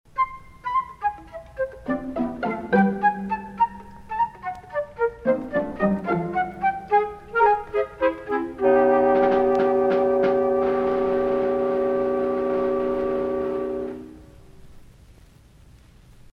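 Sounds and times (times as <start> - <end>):
light comedy music: 0.1 - 14.2.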